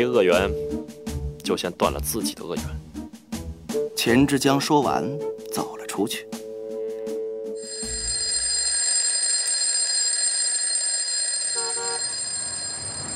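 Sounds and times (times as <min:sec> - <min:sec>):
speech: 0:00.0 - 0:02.8, 0:04.0 - 0:06.4
bell ringing for end of work: 0:07.6 - 0:13.1.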